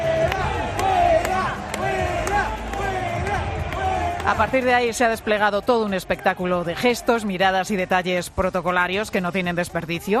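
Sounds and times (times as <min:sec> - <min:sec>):
large waiting crowd shouting at an arriving politician: 0:00.0 - 0:07.4
speech: 0:04.3 - 0:10.1.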